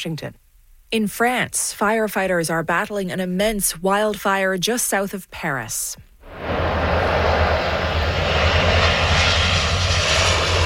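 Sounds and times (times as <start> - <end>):
speech: 0.0 - 6.1
water bomber aircraft flying overhead: 6.3 - 10.6.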